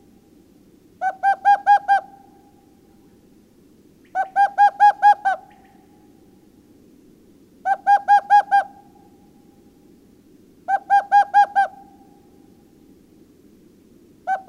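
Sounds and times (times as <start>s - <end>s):
owl hooting: 1.0s - 2.8s, 4.0s - 6.2s, 7.6s - 9.4s, 10.6s - 12.5s, 14.2s - 14.4s.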